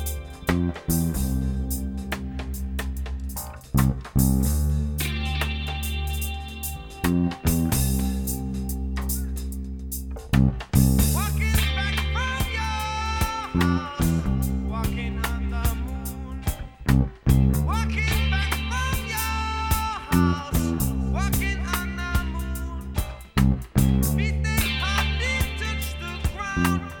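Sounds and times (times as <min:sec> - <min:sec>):
L-1500 guitar on passive single coil neck pickup: 0:00.0 - 0:26.9.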